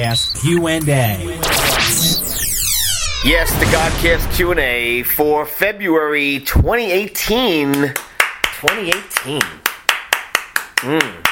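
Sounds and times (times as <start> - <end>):
speech: 0.0 - 2.2, 3.2 - 9.7, 10.8 - 11.3
person clapping hands: 7.7 - 11.3.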